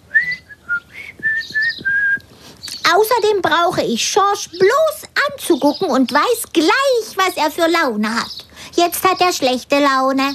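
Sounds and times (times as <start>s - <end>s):
person whistling a short bright melody: 0.1s - 2.2s
speech: 2.9s - 10.3s.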